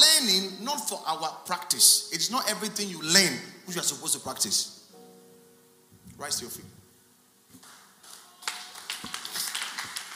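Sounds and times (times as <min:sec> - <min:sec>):
speech: 0:00.7 - 0:04.8, 0:06.2 - 0:06.8
audience clapping: 0:07.6 - 0:10.1.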